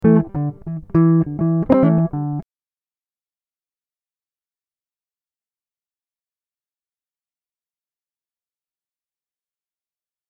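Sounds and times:
guitar riffs in E minor at 100 BPM: 0:00.0 - 0:02.4.

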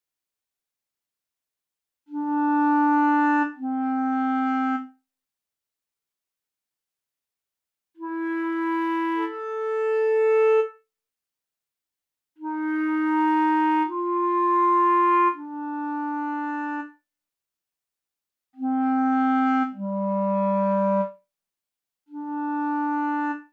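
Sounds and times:
clarinet: 0:02.1 - 0:05.0, 0:08.0 - 0:10.8, 0:12.4 - 0:17.0, 0:18.6 - 0:21.2, 0:22.1 - 0:23.5.

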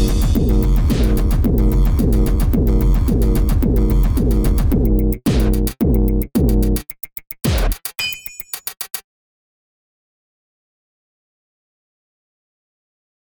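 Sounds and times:
drums playing: 0:00.0 - 0:09.0.

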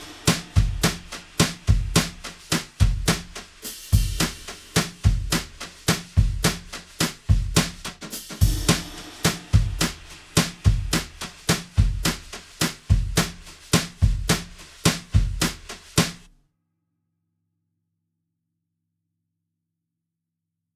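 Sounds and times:
drum brushes: 0:00.0 - 0:16.3.

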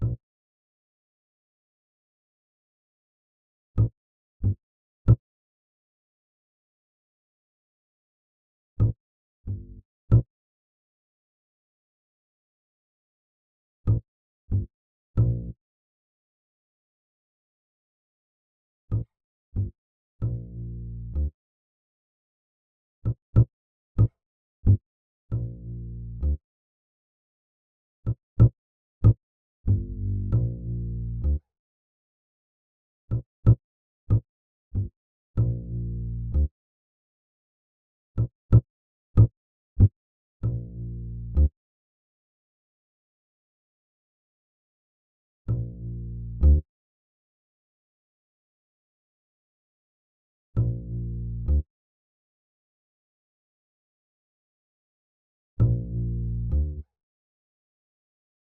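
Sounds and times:
bass: 0:00.0 - 0:00.2, 0:03.8 - 0:05.2, 0:08.8 - 0:10.3, 0:13.8 - 0:15.6, 0:18.9 - 0:21.4, 0:23.0 - 0:26.4, 0:28.0 - 0:31.5, 0:33.1 - 0:36.6, 0:38.2 - 0:41.6, 0:45.4 - 0:46.7, 0:50.6 - 0:51.7, 0:55.6 - 0:56.9.

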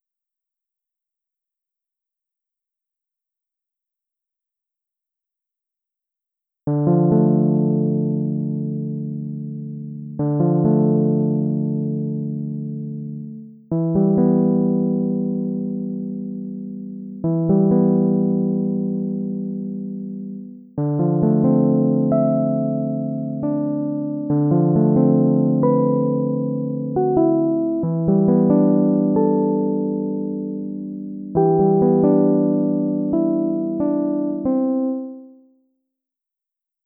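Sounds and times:
instrumental music: 0:06.7 - 0:35.5.

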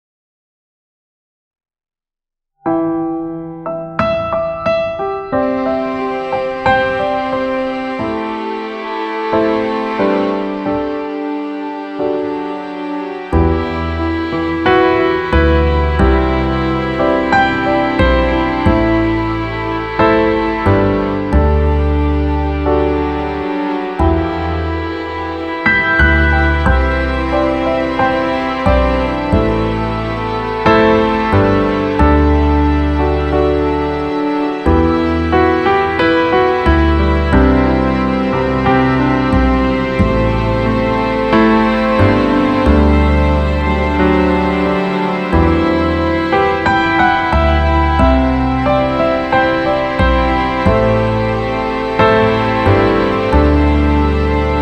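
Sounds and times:
tranquil nocturne: 0:02.7 - 0:54.5.

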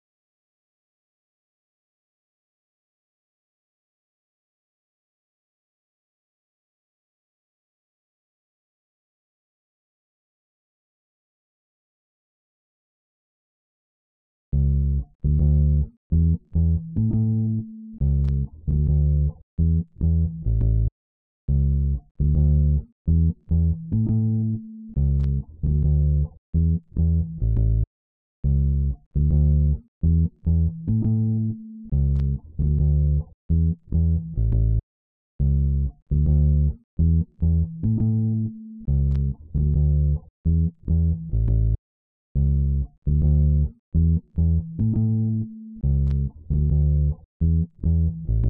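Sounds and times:
bass: 0:14.5 - 0:20.9, 0:21.5 - 0:34.8, 0:35.4 - 0:41.8, 0:42.4 - 0:48.4.

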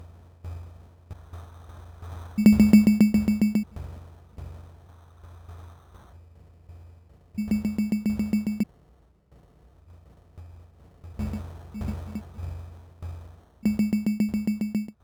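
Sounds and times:
zone ambience: 0:02.4 - 0:03.7, 0:07.4 - 0:08.7, 0:11.2 - 0:12.4, 0:13.7 - 0:14.9.

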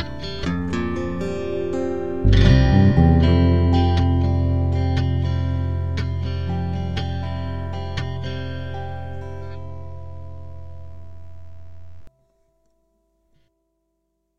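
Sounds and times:
strummed duet in C: 0:00.0 - 0:11.5.

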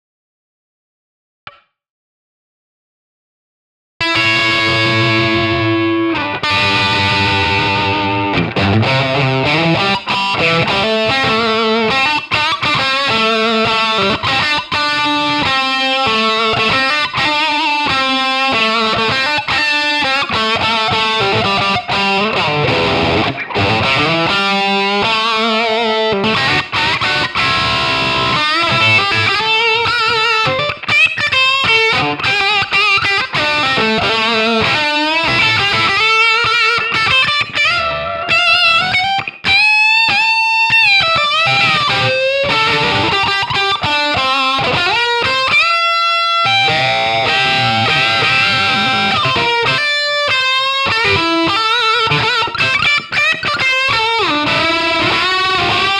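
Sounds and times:
guitar playing in A: 0:04.0 - 0:55.9.

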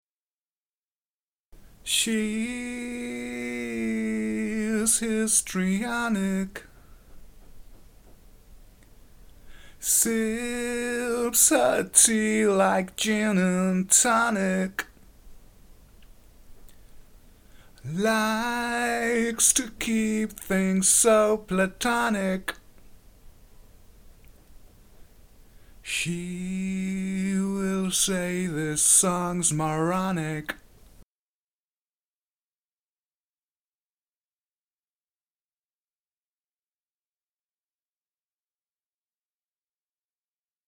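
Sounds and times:
histrionic vocals: 0:01.9 - 0:06.8, 0:09.8 - 0:15.0, 0:17.8 - 0:22.6, 0:25.8 - 0:30.6.

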